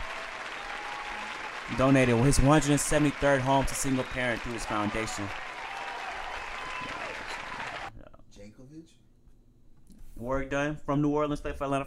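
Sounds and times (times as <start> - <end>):
round of applause: 0.0 - 7.9
speech: 1.7 - 5.4, 10.2 - 11.8.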